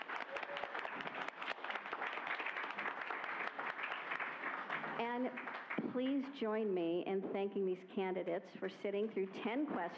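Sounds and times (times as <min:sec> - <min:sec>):
audience applause at a community candidate forum: 0:00.0 - 0:05.8
speech: 0:05.0 - 0:09.9.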